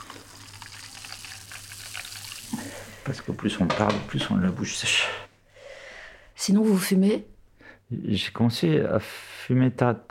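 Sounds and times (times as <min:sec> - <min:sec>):
champagne poured into a coupe glass, fizzing: 0:00.0 - 0:03.1
speech: 0:03.1 - 0:05.2, 0:06.4 - 0:07.3, 0:07.9 - 0:10.0.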